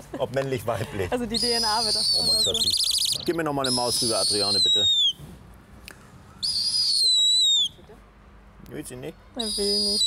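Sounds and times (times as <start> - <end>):
speech: 0.2 - 5.4, 8.7 - 10.0
bird peeping while holding mouse: 1.3 - 5.2, 6.3 - 7.8, 9.3 - 10.0.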